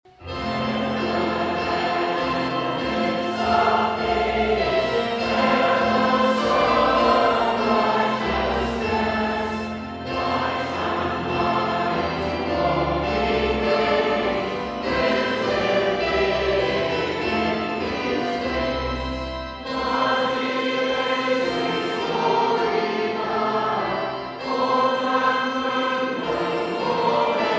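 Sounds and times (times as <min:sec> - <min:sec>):
choir singing with descant: 0:00.2 - 0:27.5.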